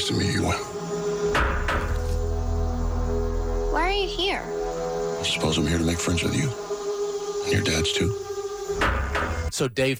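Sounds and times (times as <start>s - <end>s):
speech: 0.1s - 0.9s, 3.8s - 4.6s, 5.2s - 6.7s, 7.4s - 8.9s, 9.6s - 9.9s
low hum: 0.8s - 9.5s
knocking on a cabin door: 1.4s - 2.1s, 8.8s - 9.5s.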